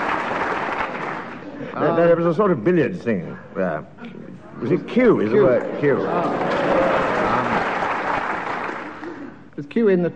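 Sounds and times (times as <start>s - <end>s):
audience clapping: 0.0s - 1.7s, 5.5s - 9.4s
speech: 1.8s - 7.0s, 9.6s - 10.1s
laughter: 4.5s - 9.4s.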